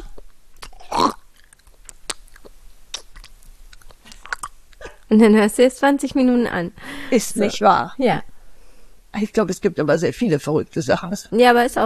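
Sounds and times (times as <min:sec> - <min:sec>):
wet lip-smacking and chewing sounds close to the ear: 0:00.0 - 0:00.8, 0:01.4 - 0:05.0
speech: 0:05.1 - 0:08.3, 0:09.2 - 0:11.8.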